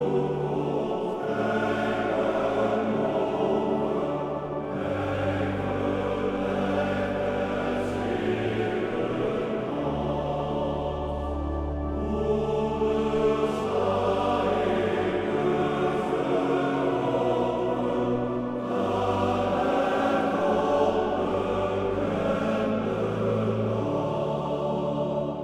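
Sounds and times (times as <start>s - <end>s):
male choir singing: 0.0s - 25.4s.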